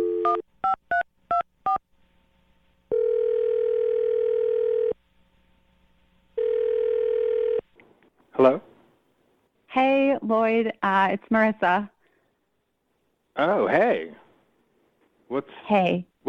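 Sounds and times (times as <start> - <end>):
steady droning telephone tone: 0.0 - 1.8, 2.9 - 5.0, 6.4 - 7.7
speech: 8.4 - 8.7, 10.3 - 12.0, 13.4 - 14.2, 15.3 - 16.2.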